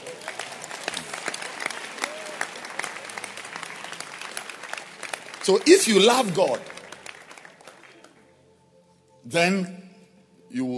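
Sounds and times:
audience clapping hands at a religious gathering: 0.0s - 8.3s
speech: 5.5s - 6.7s, 9.3s - 9.8s, 10.5s - 10.7s.

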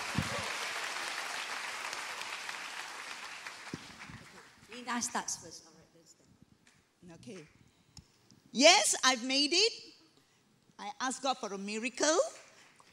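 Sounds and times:
audience clapping: 0.0s - 5.1s
speech: 4.9s - 5.7s, 7.2s - 7.6s, 8.6s - 9.9s, 10.8s - 12.4s.

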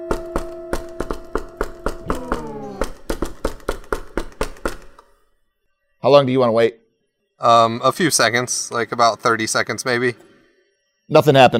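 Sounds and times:
secret knock on a door: 0.1s - 5.0s
speech: 6.0s - 6.8s, 7.4s - 10.3s, 11.1s - 11.5s.

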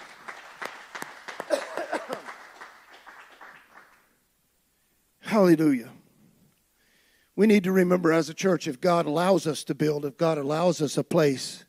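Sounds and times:
hand clap of praise: 0.0s - 4.1s
speech: 5.4s - 6.0s, 7.4s - 11.6s.

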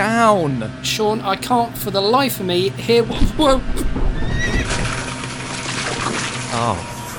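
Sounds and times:
speech: 0.0s - 4.6s, 6.6s - 6.9s
horse neighing as lawnmower hits it: 4.2s - 5.1s.

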